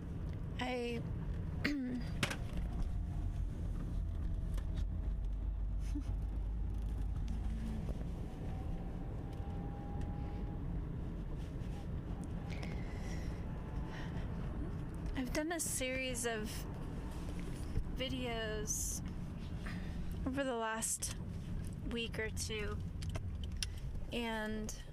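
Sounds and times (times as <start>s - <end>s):
car driving home from the mountains: 0.0s - 24.9s
speech: 0.6s - 2.3s, 15.5s - 16.7s, 18.0s - 19.0s, 20.3s - 21.2s, 21.9s - 22.9s, 24.1s - 24.8s.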